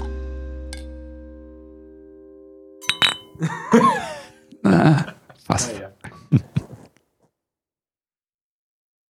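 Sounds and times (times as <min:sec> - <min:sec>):
glass bottles clinking together in a toast: 0:02.8 - 0:03.6
laughter: 0:03.3 - 0:06.8.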